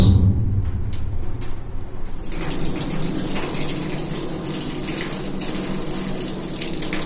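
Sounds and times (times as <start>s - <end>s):
low booming rumble of sink: 0.0s - 2.3s
water splashing as screen is rinsed: 0.7s - 5.5s
water running into large sink, rinsing screen: 0.7s - 7.0s.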